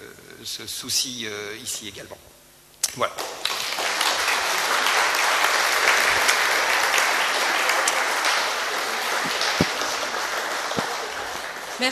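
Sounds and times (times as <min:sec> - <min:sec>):
speech: 0:00.4 - 0:03.4
audience applause: 0:03.1 - 0:11.9.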